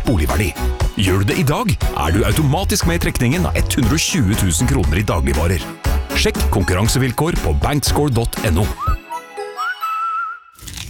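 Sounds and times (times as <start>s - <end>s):
speech: 0.1s - 9.0s
sustained whistling tone: 8.8s - 10.6s
shrimp crunched in someone's mouth: 10.6s - 10.8s.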